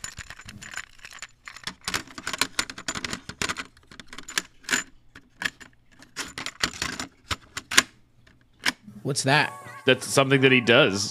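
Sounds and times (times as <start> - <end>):
plastic cassette tape clicking and rattling as it is put into a player: 0.0 - 8.8
speech: 9.0 - 11.1.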